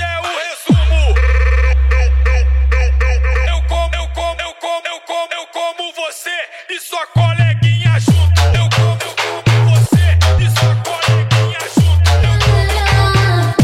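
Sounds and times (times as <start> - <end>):
funk bass: 0.0 - 4.3, 7.2 - 13.6.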